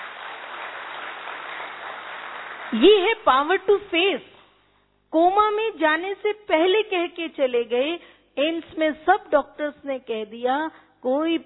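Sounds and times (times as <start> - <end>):
audience applause: 0.0 - 2.8
speech: 2.7 - 4.3, 5.1 - 11.4.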